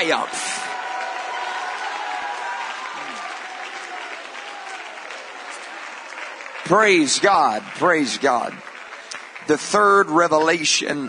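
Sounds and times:
speech: 0.0 - 0.5, 6.7 - 8.7, 9.5 - 11.0
voices shouting and cheering: 0.0 - 8.7
audience clapping: 0.0 - 11.0.

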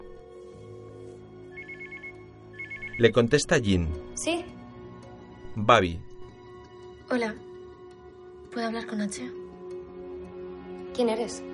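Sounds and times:
mobile phone ringtone: 1.5 - 3.1
speech: 3.0 - 4.5, 5.6 - 6.1, 7.1 - 7.5, 8.5 - 9.4, 11.0 - 11.5.

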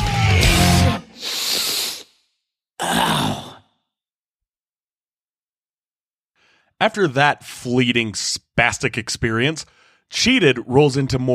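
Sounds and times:
music track: 0.0 - 1.2
nasal inhalations closing a music track: 1.0 - 2.3
speech: 6.8 - 11.3.

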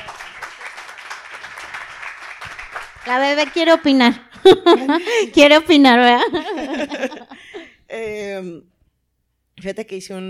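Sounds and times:
applause: 0.0 - 5.2
speech: 3.1 - 7.3, 8.0 - 8.7, 9.6 - 10.2
laughter: 4.4 - 5.4, 6.1 - 7.8.

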